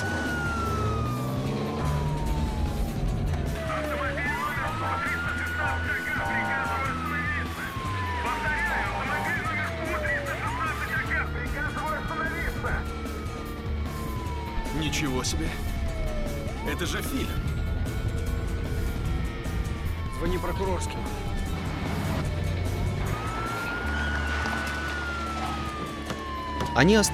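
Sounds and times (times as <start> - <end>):
road and engine noise: 0.0 - 27.1
traffic police car siren wailing during a high-speed chase: 0.0 - 27.1
speech: 15.0 - 15.7, 16.8 - 17.5, 20.2 - 21.3, 26.8 - 27.1.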